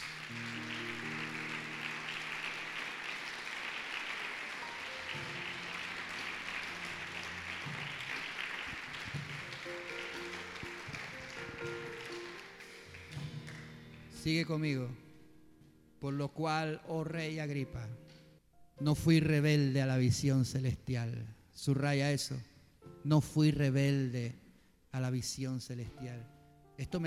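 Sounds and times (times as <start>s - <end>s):
applause: 0.0s - 14.3s
speech: 14.3s - 15.0s, 16.0s - 18.1s, 18.8s - 27.0s.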